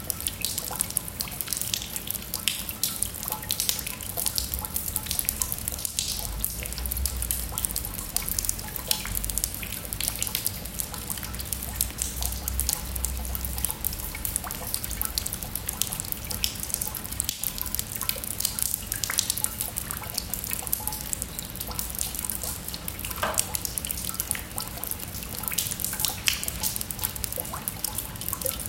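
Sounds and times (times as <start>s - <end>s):
rain at a temple: 0.0s - 28.6s.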